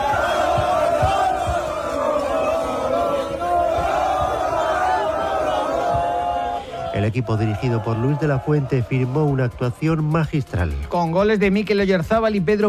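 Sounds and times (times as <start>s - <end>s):
football fans chanting in celebration: 0.0s - 9.6s
speech: 7.0s - 12.6s.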